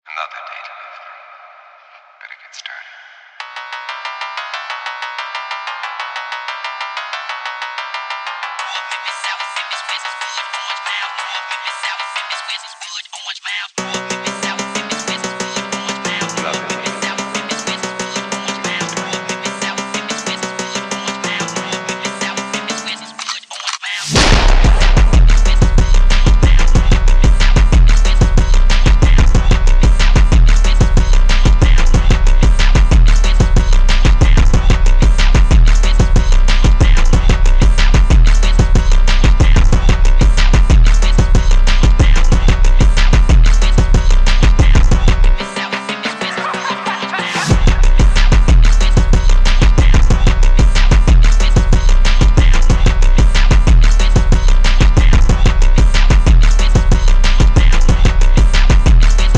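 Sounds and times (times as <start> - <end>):
drift phonk Memphis type beat: 3.4 - 59.3
laughter: 46.0 - 47.5.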